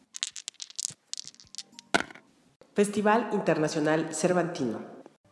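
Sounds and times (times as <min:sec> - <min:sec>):
dice being rolled: 0:00.0 - 0:02.2
speech: 0:02.8 - 0:05.0.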